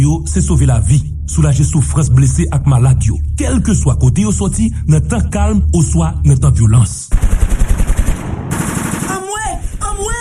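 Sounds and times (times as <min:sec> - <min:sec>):
speech: 0:00.0 - 0:07.6
automatic gunfire in a dramatized scene about attacks on health workers: 0:07.1 - 0:10.0.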